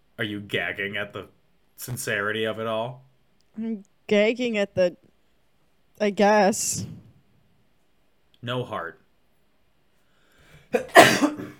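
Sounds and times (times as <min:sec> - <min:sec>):
speech: 0:00.2 - 0:05.1, 0:06.0 - 0:07.0, 0:08.4 - 0:09.0, 0:10.7 - 0:11.5
sneeze: 0:10.8 - 0:11.5.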